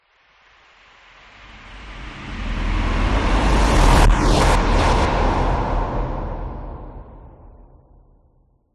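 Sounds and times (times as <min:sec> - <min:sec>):
whoosh: 0:01.3 - 0:08.0.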